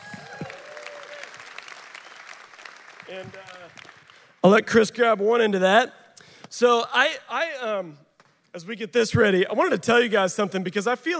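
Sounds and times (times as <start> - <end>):
audience applause: 0.0 - 4.4
speech: 3.1 - 11.1.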